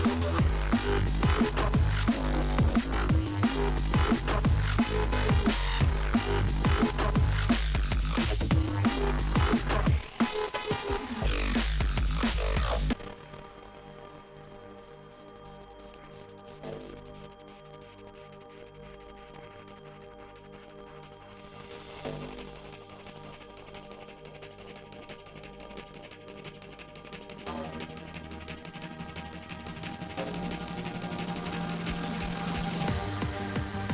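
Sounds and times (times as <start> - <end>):
weedy bass drum: 0.0 - 13.0, 30.1 - 33.9.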